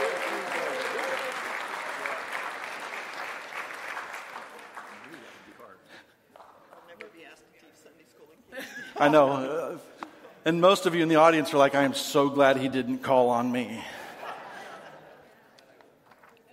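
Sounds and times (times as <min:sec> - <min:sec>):
audience applause: 0:00.0 - 0:05.7
laughter: 0:08.5 - 0:10.4, 0:13.8 - 0:15.9
speech: 0:09.0 - 0:09.6, 0:10.4 - 0:14.0.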